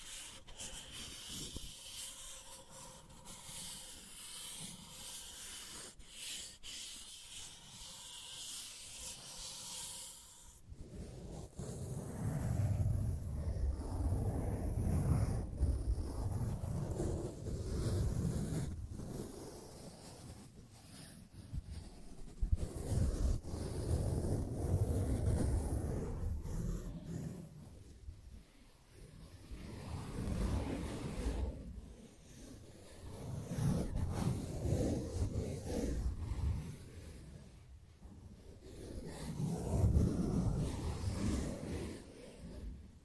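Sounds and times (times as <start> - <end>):
steady hiss with faint tones: 0.0 - 10.6
soft rubbing and brushing sweeps over the microphone: 0.0 - 43.0.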